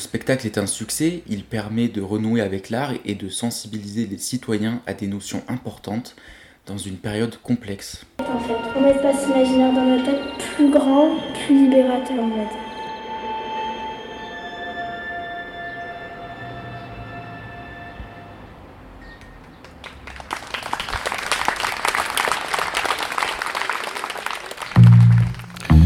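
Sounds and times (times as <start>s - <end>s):
speech: 0.1s - 12.7s
sustained musical tones: 8.2s - 19.2s
crowd applause: 19.4s - 25.8s.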